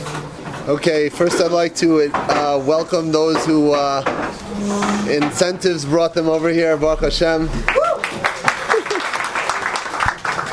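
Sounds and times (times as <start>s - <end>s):
speech: 0.7s - 7.8s
audience clapping: 7.7s - 10.5s.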